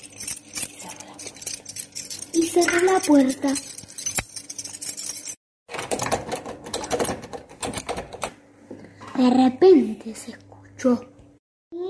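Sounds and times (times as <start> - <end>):
house keys being handled: 0.0 - 5.4
speech: 2.6 - 3.8, 9.2 - 11.1.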